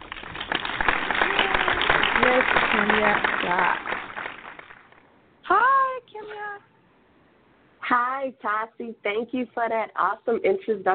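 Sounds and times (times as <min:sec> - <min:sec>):
crowd applause sound effect: 0:00.0 - 0:05.0
speech: 0:03.0 - 0:03.9, 0:08.2 - 0:10.9.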